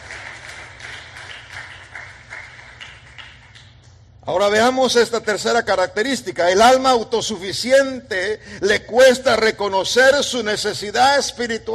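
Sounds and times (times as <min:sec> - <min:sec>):
audience clapping hands: 0:00.0 - 0:03.9
speech: 0:04.2 - 0:11.7.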